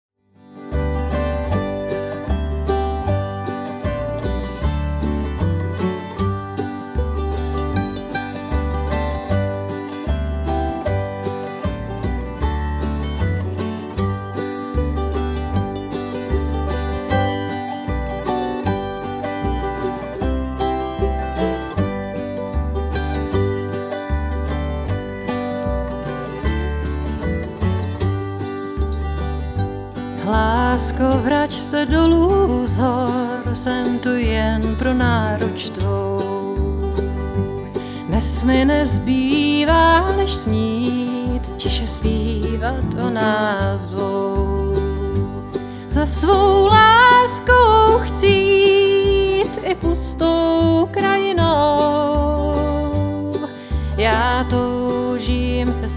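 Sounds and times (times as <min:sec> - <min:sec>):
autoharp: 0:00.4 - 0:55.9.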